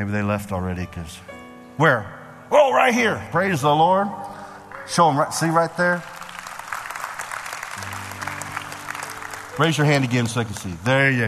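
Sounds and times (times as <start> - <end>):
speech: 0.0 - 4.3, 4.9 - 6.2, 9.6 - 11.2
church congregation applauding for first-time visitors: 4.6 - 11.2.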